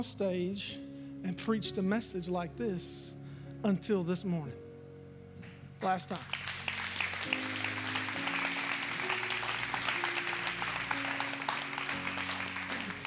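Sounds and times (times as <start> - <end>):
speech: 0.0 - 4.6, 5.8 - 6.4
audience clapping: 5.8 - 13.0.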